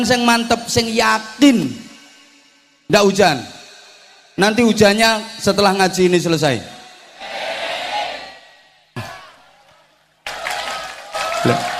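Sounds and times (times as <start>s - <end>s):
speech: 0.0s - 1.8s, 2.9s - 3.6s, 4.4s - 6.8s, 11.4s - 11.7s
audience at a religious study gathering clapping: 9.6s - 11.7s.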